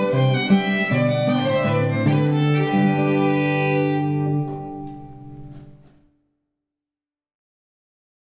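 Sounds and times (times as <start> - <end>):
fiddle tune: 0.0 - 5.9
guitar harmony: 0.0 - 5.9.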